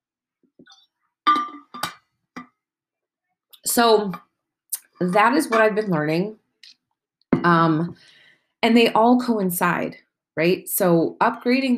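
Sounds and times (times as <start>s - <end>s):
glass clinking: 0.7s - 2.0s
speech: 3.8s - 4.3s, 5.0s - 6.4s, 7.4s - 11.7s.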